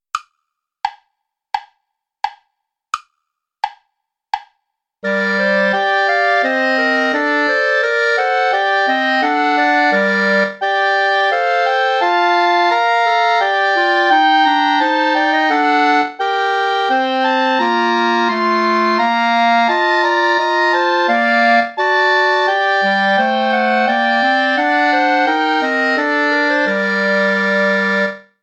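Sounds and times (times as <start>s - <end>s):
play-along backing music without clarinet: 5.0s - 28.3s.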